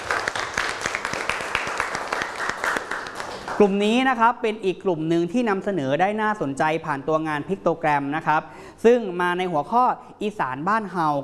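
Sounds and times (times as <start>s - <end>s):
classroom applause for a group: 0.0s - 3.7s
speech: 3.6s - 11.2s.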